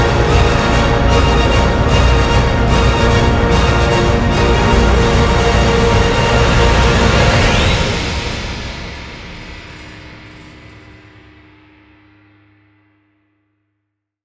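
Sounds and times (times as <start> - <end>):
metal music: 0.0 - 11.3.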